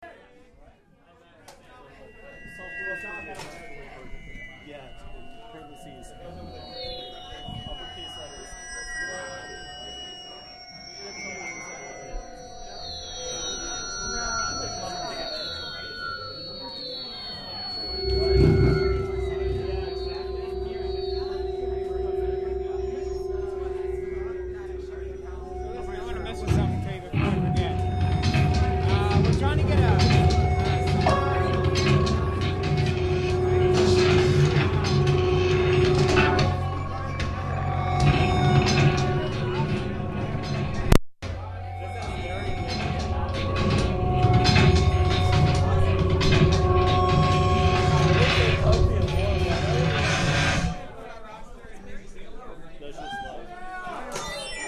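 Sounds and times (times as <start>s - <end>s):
bass: 10.9s - 51.0s.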